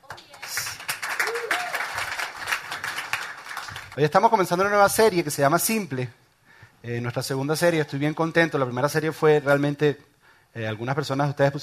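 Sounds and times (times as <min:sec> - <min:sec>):
applause: 0:00.0 - 0:04.2
speech: 0:04.0 - 0:06.2, 0:06.8 - 0:11.6.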